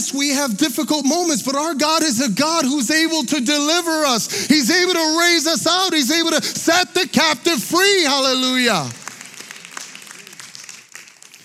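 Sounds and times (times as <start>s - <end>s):
speech: 0.1s - 9.0s
audience clapping: 7.8s - 11.4s.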